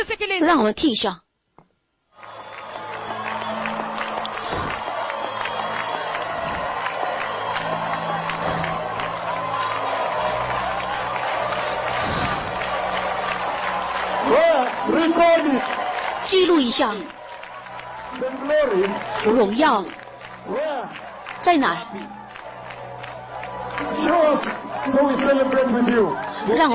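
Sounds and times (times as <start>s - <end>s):
speech: 0.0s - 1.2s, 14.9s - 17.2s, 18.2s - 22.2s, 23.9s - 26.7s
crowd applauding the sunset in a park: 2.1s - 26.7s
scattered cheers and voices: 2.2s - 26.7s.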